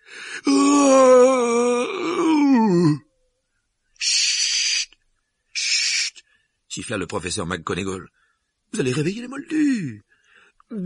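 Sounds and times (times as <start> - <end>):
person howling like a wounded dog: 0.4 - 3.0
speech: 6.9 - 10.1, 10.7 - 10.8.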